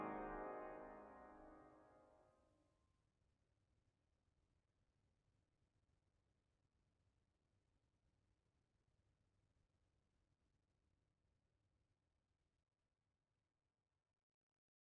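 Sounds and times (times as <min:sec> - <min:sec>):
carillon after the bells of Ulm Cathedral: 0:00.0 - 0:01.6.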